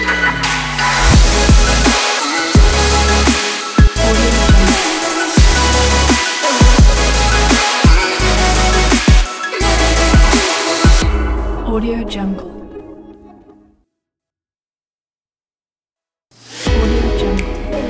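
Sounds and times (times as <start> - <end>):
future bass music: 0.0 - 12.9, 16.6 - 17.8.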